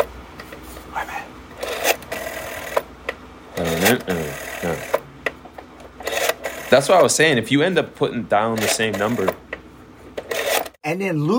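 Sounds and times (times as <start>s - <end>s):
speech: 1.0s - 1.4s, 3.8s - 5.0s, 6.7s - 9.4s, 10.9s - 11.3s
rotary phone dial being turned and released: 1.5s - 7.2s, 8.4s - 9.4s, 10.1s - 10.8s.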